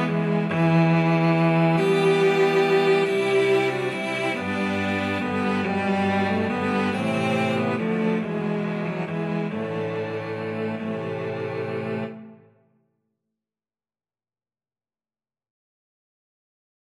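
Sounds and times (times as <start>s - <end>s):
cello quartet playing a carol: 0.0s - 12.4s.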